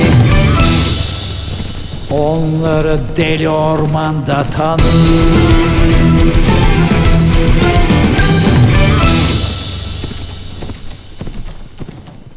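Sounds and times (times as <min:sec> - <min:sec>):
sustained tonal layer: 0:00.0 - 0:03.6, 0:04.8 - 0:11.3
horse hoofbeats clip-clopping through a forest: 0:00.0 - 0:12.3
speech: 0:02.4 - 0:07.9.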